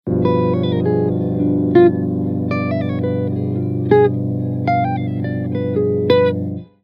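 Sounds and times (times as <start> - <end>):
musical lick: 0.1 - 6.6.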